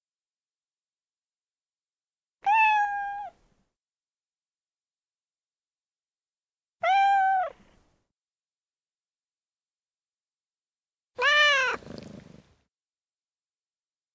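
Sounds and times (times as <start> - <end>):
domestic cat meowing: 2.4 - 3.4, 6.8 - 7.6, 11.2 - 12.2.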